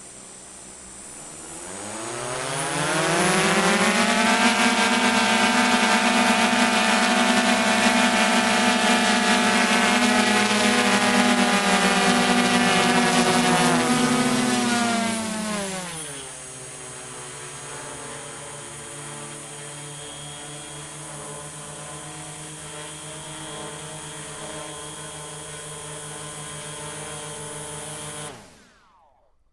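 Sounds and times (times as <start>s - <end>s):
S900 drone motors starting up, running at steady rpm and shutting down while stationary: 0.0s - 29.3s.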